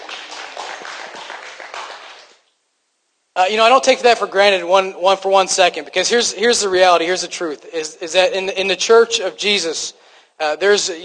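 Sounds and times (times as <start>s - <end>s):
audience clapping: 0.0s - 2.5s
speech: 3.4s - 11.0s.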